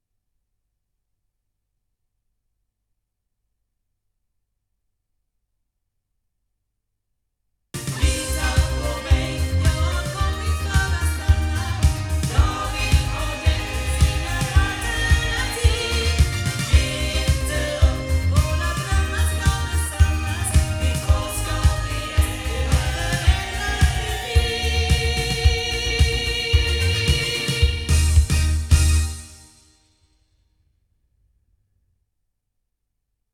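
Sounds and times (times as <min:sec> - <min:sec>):
loudspeakers: 0:07.8 - 0:29.1.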